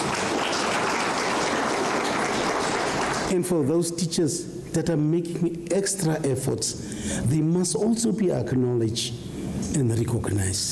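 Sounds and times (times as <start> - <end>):
round of applause: 0.0 - 3.3
speech: 3.3 - 10.7.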